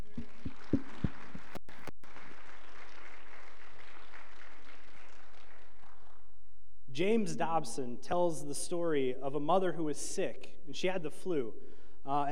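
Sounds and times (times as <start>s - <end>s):
audience applause: 0.0s - 6.2s
speech: 7.0s - 12.3s.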